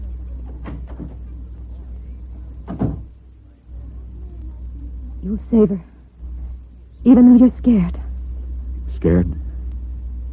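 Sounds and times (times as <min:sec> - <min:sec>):
door being shut: 0:02.6 - 0:03.1
speech: 0:05.3 - 0:05.9, 0:07.0 - 0:08.0, 0:09.0 - 0:09.4.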